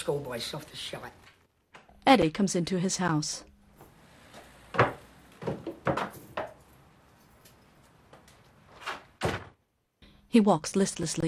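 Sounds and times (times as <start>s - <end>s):
speech: 0.0s - 1.3s, 2.1s - 3.5s, 10.3s - 11.2s
cupboard door opening and closing: 3.8s - 6.7s, 8.1s - 9.6s.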